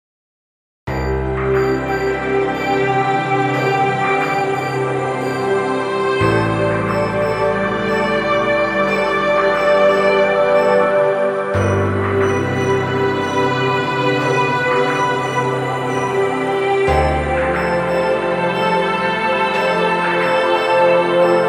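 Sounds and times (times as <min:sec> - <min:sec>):
dreamy ambient relaxation music: 0:00.9 - 0:21.4.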